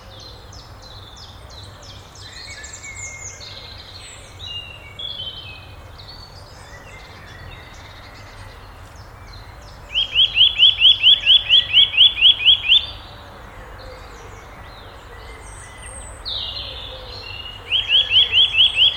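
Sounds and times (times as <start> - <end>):
nuthatch calling: 9.9 - 13.0, 16.5 - 18.9.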